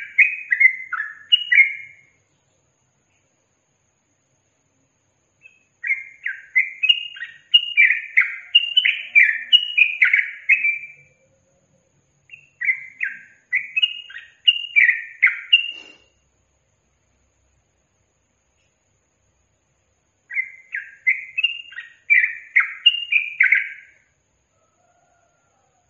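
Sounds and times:
yellow-vented bulbul singing: 0.0s - 3.4s, 5.2s - 16.2s, 18.5s - 24.2s.

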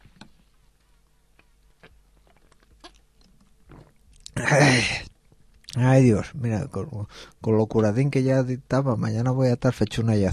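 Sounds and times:
person taking a sip of water: 1.4s - 5.8s
speech: 4.4s - 5.0s, 6.0s - 10.3s.

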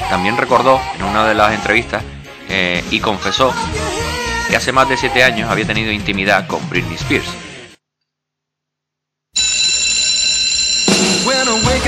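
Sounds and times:
speech: 0.1s - 3.9s, 4.5s - 7.5s
electric bell ringing: 9.4s - 11.8s.

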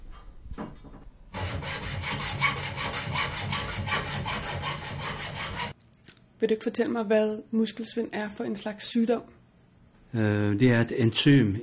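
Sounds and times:
hand saw cutting through a wooden curtain rod laid between two chairs in an office: 1.4s - 5.8s
speech: 6.4s - 9.4s, 10.1s - 11.6s.

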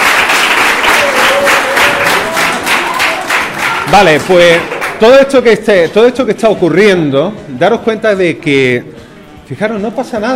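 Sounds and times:
applause at a secondary school event: 0.0s - 5.0s
speech: 3.9s - 10.3s.

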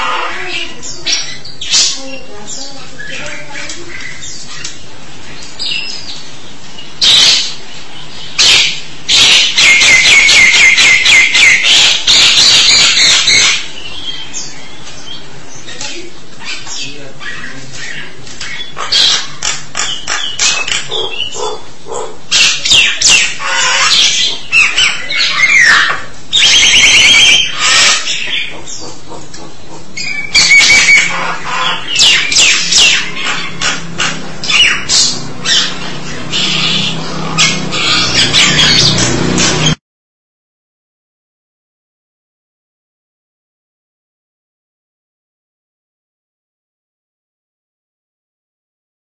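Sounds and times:
starling calls: 0.0s - 39.8s.

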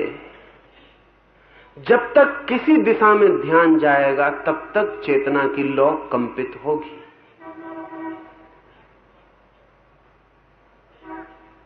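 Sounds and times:
speech: 1.8s - 7.0s
car horn honking on the road: 4.8s - 8.6s, 11.0s - 11.6s.

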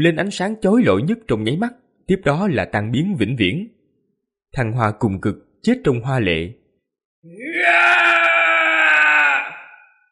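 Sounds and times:
speech: 0.0s - 3.8s, 4.5s - 6.6s, 7.2s - 8.2s
man screaming: 7.3s - 10.1s.

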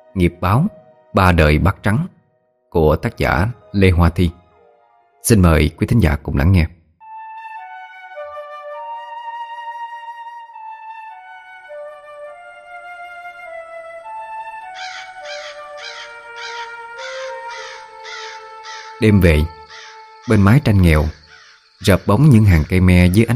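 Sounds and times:
speech: 0.2s - 4.4s, 5.2s - 6.8s, 19.0s - 19.6s, 20.3s - 21.2s, 21.8s - 23.3s
crows cawing: 14.6s - 22.1s.

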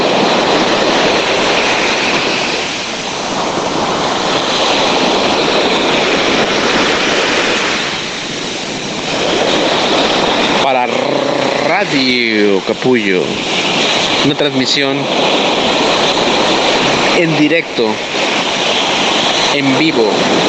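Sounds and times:
ocean waves breaking into foam: 0.0s - 20.4s
speech: 11.8s - 13.6s, 14.2s - 15.8s, 17.2s - 18.2s, 19.6s - 20.4s.

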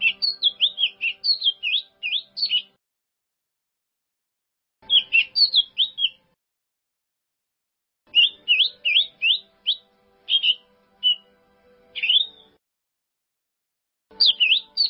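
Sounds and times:
bird song: 0.0s - 2.8s, 4.8s - 6.4s, 8.1s - 12.6s, 14.1s - 14.8s.

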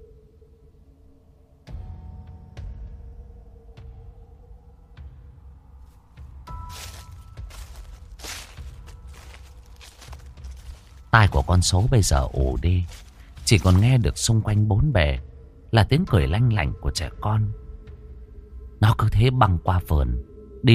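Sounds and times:
footsteps crunching on dry leaves: 6.5s - 14.3s
speech: 11.2s - 17.6s, 18.8s - 20.7s.

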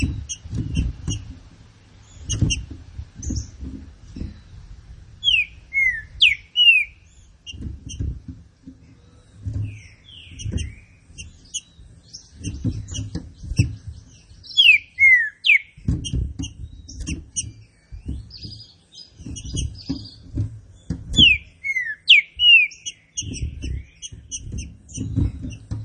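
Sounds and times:
low thuds: 0.0s - 15.1s, 15.7s - 21.7s, 22.3s - 25.8s
Green-winged saltator singing: 5.2s - 6.9s, 14.6s - 15.7s.

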